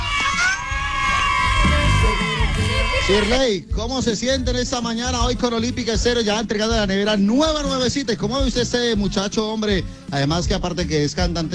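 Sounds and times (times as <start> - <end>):
crowd cheering: 0.0 - 3.4
speech: 3.1 - 11.5.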